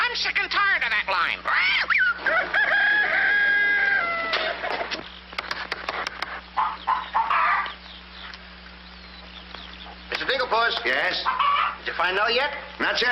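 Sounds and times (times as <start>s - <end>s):
speech: 0.2s - 1.6s, 10.9s - 13.0s
hens clucking and squawking: 1.2s - 12.5s
drawn-out crowing call: 1.8s - 4.7s, 6.6s - 7.8s, 11.2s - 11.8s.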